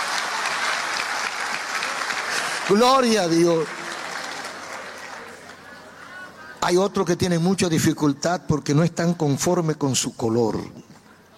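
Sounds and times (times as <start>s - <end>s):
audience applause during a sermon-style talk: 0.0s - 6.0s
speech: 2.7s - 3.8s, 6.6s - 10.9s.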